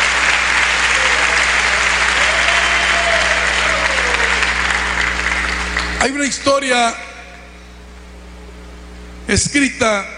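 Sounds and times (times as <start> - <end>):
audience applause: 0.0 - 6.0
faint hum: 0.0 - 10.1
speech: 6.0 - 7.1, 9.3 - 10.1.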